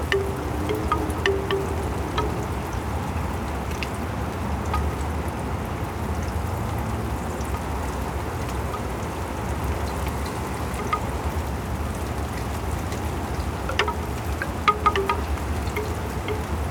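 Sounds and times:
large bamboo wind chime: 0.0 - 3.1, 8.7 - 16.6
rain in Oregon: 0.0 - 16.6.

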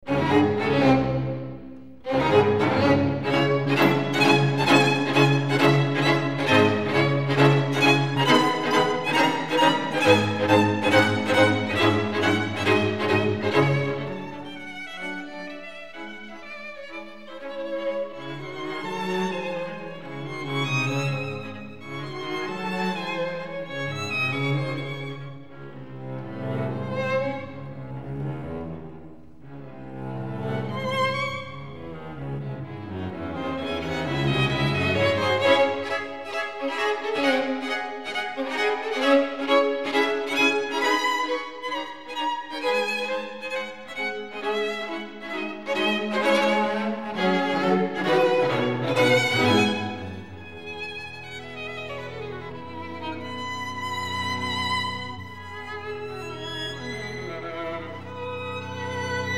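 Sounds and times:
string quartet playing an allegro in C-sharp minor: 0.0 - 59.3.

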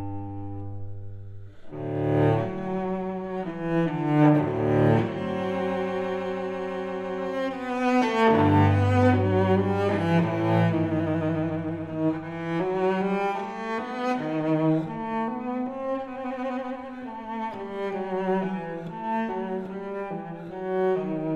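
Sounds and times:
solo cello suite: 0.0 - 21.3.

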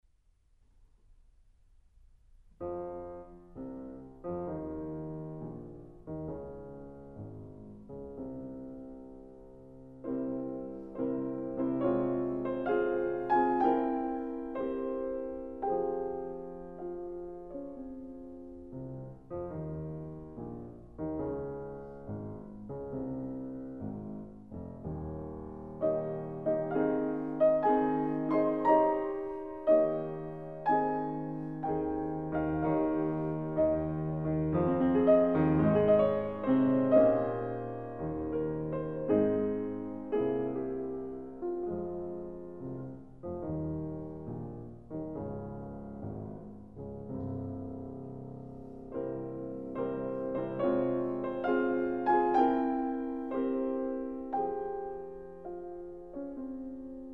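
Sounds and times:
fantasia: 2.5 - 57.1.

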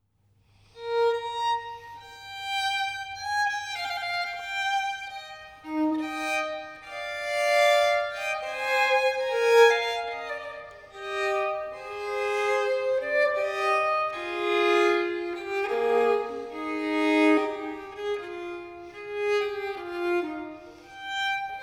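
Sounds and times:
solo violin loure: 0.8 - 21.6.

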